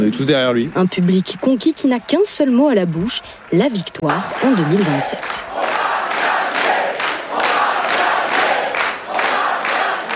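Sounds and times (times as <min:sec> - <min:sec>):
speech: 0:00.0 - 0:05.7
supporters chanting at a political rally: 0:04.0 - 0:10.1.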